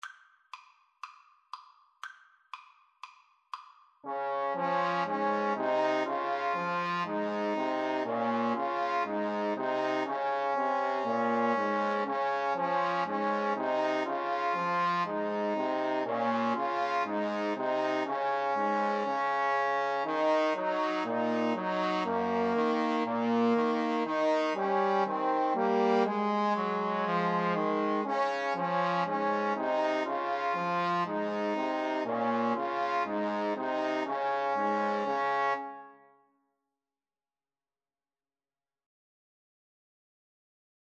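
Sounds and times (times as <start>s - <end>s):
trombone trio: 4.1s - 19.1s, 20.0s - 35.6s.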